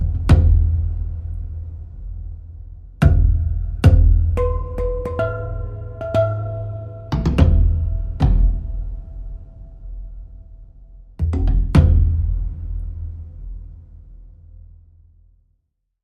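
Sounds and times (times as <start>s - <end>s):
low percussion: 0.0s - 15.3s
main musical motif: 4.4s - 9.5s.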